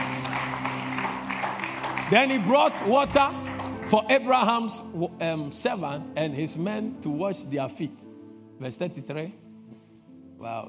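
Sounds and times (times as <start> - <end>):
crowd audience clapping: 0.0 - 4.5
speech: 2.1 - 9.4, 10.4 - 10.6.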